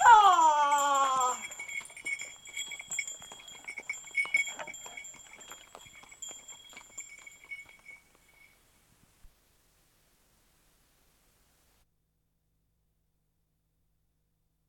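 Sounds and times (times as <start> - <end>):
mule driver's song: 0.0 - 1.4.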